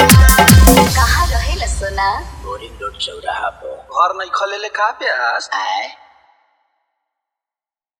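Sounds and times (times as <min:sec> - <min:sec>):
dholak bass dance mix: 0:00.0 - 0:02.6.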